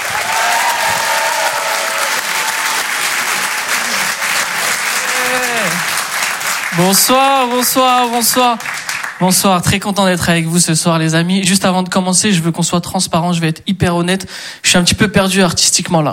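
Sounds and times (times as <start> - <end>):
audience applause and cheering at a comedy club: 0.0 - 9.3
speech: 6.8 - 16.1.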